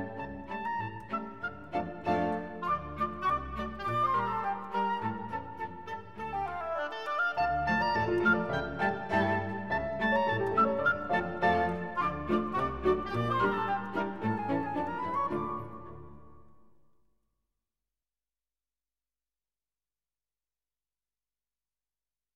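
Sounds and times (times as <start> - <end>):
Italian polka music: 0.0 - 16.2.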